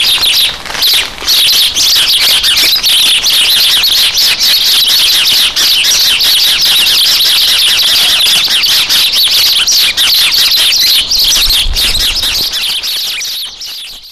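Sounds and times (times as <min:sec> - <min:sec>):
sparrows chirping in a squabble: 0:00.0 - 0:14.1.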